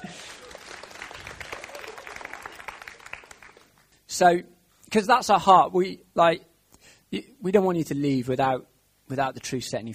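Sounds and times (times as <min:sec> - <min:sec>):
audience applause: 0:00.0 - 0:03.9
speech: 0:04.2 - 0:06.5, 0:07.1 - 0:09.9.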